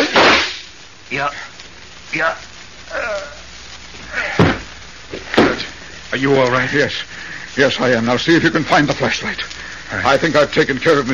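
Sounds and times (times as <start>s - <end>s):
gunshot sound effects in a radio drama: 0.0s - 0.7s
speech: 1.1s - 1.5s, 2.1s - 3.3s, 6.1s - 11.1s.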